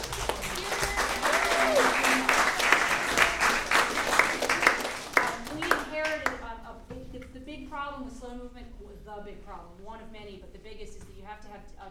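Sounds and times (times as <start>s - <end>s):
people cheering: 0.0s - 5.7s
audience applause: 0.0s - 6.2s.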